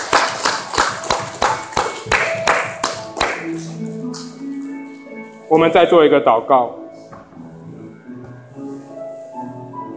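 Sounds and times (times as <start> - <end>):
audience clapping hands: 0.0 - 3.7
speech: 5.5 - 6.8.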